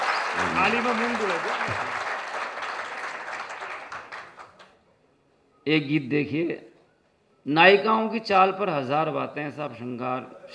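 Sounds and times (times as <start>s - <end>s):
audience clapping loudly at a Hindi song and poetry recital: 0.0s - 4.8s
speech: 0.4s - 2.0s, 5.6s - 6.7s, 7.4s - 10.5s.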